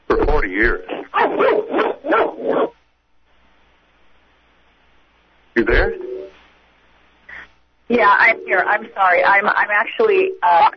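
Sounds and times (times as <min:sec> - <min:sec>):
speech: 0:00.1 - 0:01.6, 0:07.9 - 0:10.7
dog barking in a car: 0:01.1 - 0:02.8.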